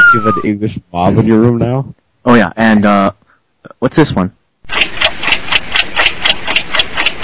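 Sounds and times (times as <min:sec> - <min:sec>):
speech: 0:00.1 - 0:03.2, 0:03.8 - 0:05.0
clock ticking sound effect: 0:04.7 - 0:07.2.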